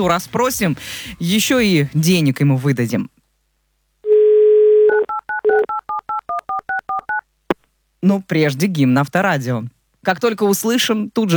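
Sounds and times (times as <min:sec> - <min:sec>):
speech: 0:00.0 - 0:03.2, 0:08.0 - 0:11.3
steady telephone dial tone: 0:04.1 - 0:05.7.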